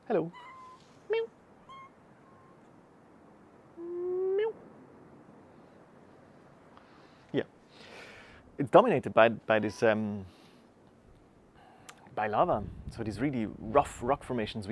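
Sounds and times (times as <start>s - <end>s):
hiss: 0.0s - 14.6s
speech: 0.1s - 1.3s, 7.3s - 7.6s, 8.6s - 10.4s, 12.2s - 14.6s
kitten meowing: 0.3s - 0.8s, 1.6s - 2.0s.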